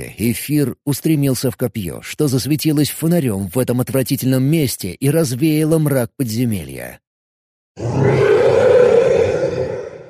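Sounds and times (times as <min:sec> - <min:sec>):
speech: 0:00.0 - 0:07.0, 0:07.8 - 0:08.3
monsters roaring: 0:07.8 - 0:10.0.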